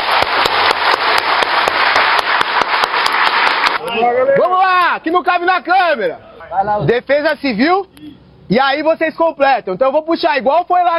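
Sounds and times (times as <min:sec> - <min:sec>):
group applauding: 0:00.0 - 0:04.6
speech: 0:05.0 - 0:10.9.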